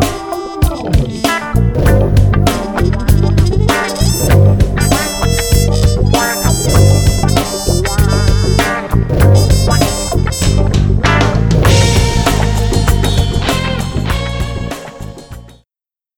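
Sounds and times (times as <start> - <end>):
funk music mix: 0.0 - 15.6.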